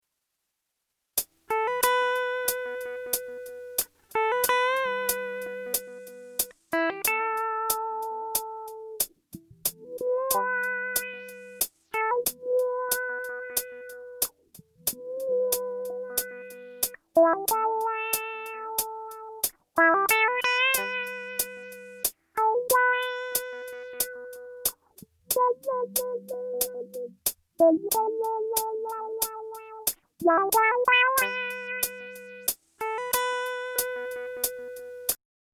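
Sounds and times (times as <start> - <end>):
guitar through Boss RC 202 low pass filter: 1.5 - 24.7, 25.3 - 35.1.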